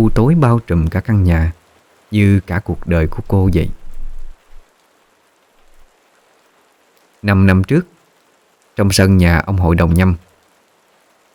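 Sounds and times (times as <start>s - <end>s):
speech: 0.0s - 3.8s, 7.2s - 7.9s, 8.8s - 10.2s
steady rain falling outside: 0.0s - 11.3s.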